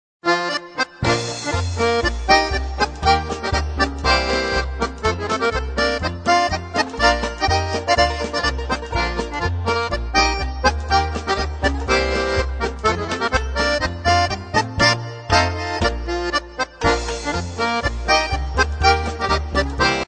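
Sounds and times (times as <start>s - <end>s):
polka music: 0.2s - 20.0s.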